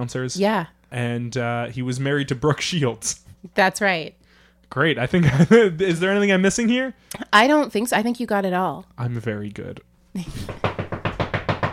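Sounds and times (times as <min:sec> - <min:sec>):
speech: 0:00.0 - 0:10.7
angry heavy knocks on a door: 0:10.4 - 0:11.7.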